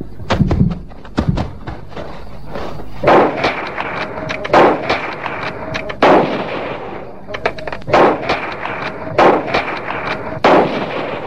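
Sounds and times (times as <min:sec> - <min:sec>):
rifle gunshots: 0:03.0 - 0:11.2.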